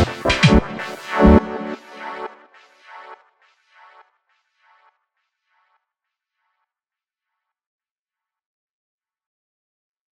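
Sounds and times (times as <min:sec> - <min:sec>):
Casio keyboard chord: 0:00.0 - 0:02.4.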